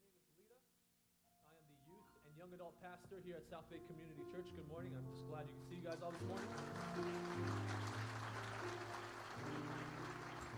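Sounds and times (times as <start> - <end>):
speech: 2.3 - 9.8
audience clapping: 5.8 - 10.5.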